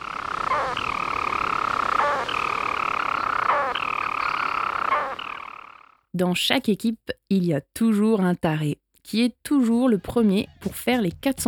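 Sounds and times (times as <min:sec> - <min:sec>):
storm petrel purring song: 0:00.0 - 0:06.0, 0:10.0 - 0:11.4
speech: 0:06.2 - 0:11.4.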